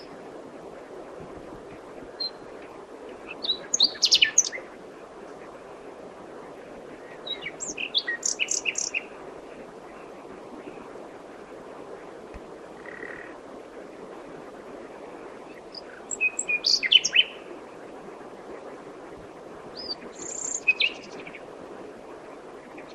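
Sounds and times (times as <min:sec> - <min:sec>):
common nightingale Luscinia megarhynchos singing: 0:03.4 - 0:04.6, 0:07.3 - 0:09.1, 0:15.7 - 0:17.4, 0:19.8 - 0:21.1.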